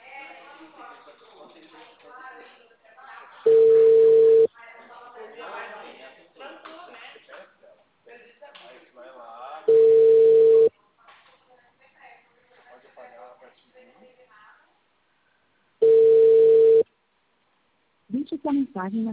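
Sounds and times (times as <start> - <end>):
phone ringing tone as a call goes unanswered: 3.5 - 4.5, 9.7 - 10.7, 15.8 - 16.8
speech: 18.5 - 19.1.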